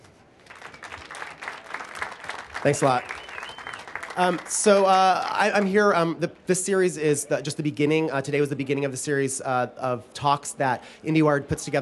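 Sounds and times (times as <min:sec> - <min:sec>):
audience applause: 0:00.4 - 0:05.8
speech: 0:02.6 - 0:03.1, 0:04.2 - 0:11.7.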